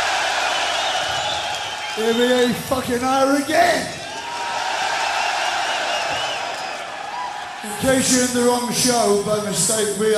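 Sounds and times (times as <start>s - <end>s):
large concert crowd cheering: 0.0s - 10.1s
whoops and whistles: 0.5s - 2.2s, 5.0s - 7.3s
speech: 2.0s - 4.0s, 7.6s - 10.1s.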